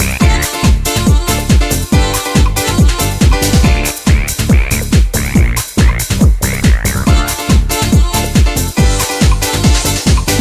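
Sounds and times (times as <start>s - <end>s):
instrumental dance ringtone: 0.2s - 10.3s.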